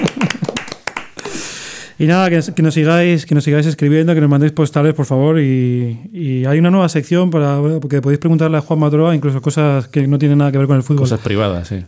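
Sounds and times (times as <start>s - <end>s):
applause for the technician: 0.0s - 1.3s
speech: 2.0s - 11.8s.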